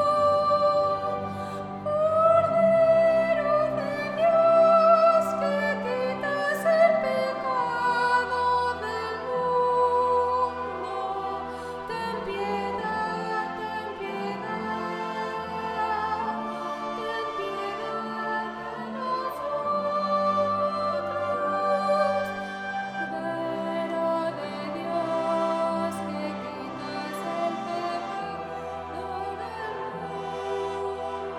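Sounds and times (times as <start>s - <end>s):
soprano singing: 0.0s - 31.3s.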